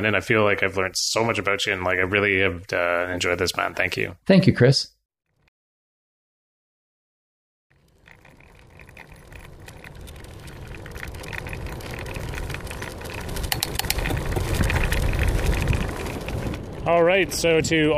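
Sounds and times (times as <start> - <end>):
speech: 0.0 - 4.9, 16.9 - 17.9
bicycle rattling: 7.7 - 17.9
wind and road noise during a bicycle ride on the South Island: 7.7 - 17.9.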